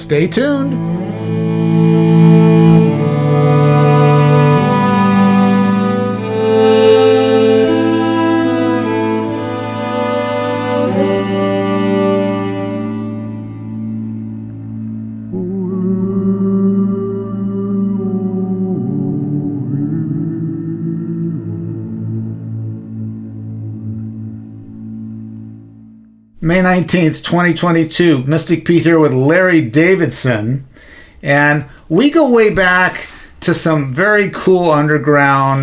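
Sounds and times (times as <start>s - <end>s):
speech: 0.1s - 2.6s, 26.5s - 35.6s
santur playing an Indian classical raga: 0.1s - 15.6s, 22.7s - 26.3s
steady low drone: 0.6s - 26.3s.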